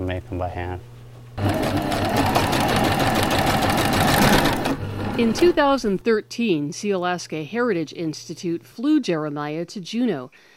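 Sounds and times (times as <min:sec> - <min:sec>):
speech: 0:00.1 - 0:02.4, 0:05.2 - 0:10.5
skin sewing machine running: 0:01.4 - 0:05.8.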